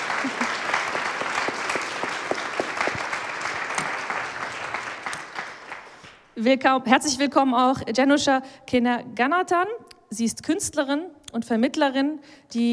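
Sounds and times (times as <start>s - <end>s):
audience applause: 0.0s - 6.1s
speech: 6.4s - 12.7s.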